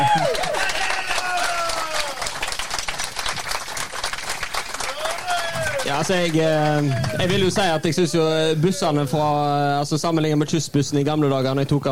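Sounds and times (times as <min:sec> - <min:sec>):
applause: 0:00.0 - 0:07.9
speech: 0:05.9 - 0:11.9.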